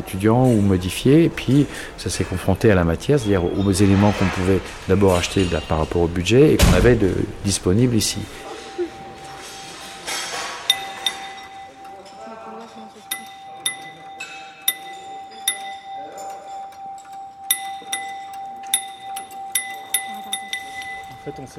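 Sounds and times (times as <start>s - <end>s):
speech: 0.0s - 8.5s
faint murmur of voices: 0.0s - 17.0s
chimes clinking: 0.0s - 21.5s
steady pitched hum: 2.8s - 21.5s.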